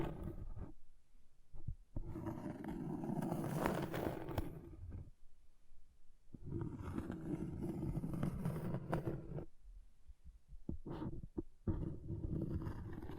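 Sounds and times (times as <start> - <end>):
object scratching in coarse rasping strokes: 0.0 - 0.8, 2.0 - 5.1, 6.4 - 9.5, 10.7 - 13.1.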